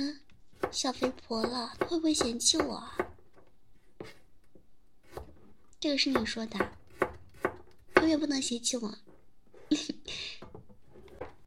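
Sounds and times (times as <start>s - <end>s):
speech: 0.0s - 3.0s, 5.8s - 6.8s, 8.1s - 9.0s, 9.7s - 10.2s
knife chopping vegetables: 0.5s - 3.2s, 5.0s - 8.3s.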